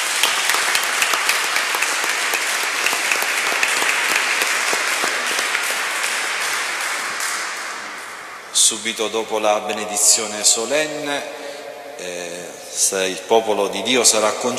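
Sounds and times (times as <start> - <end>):
audience applause: 0.0 - 8.3
speech: 8.7 - 14.5.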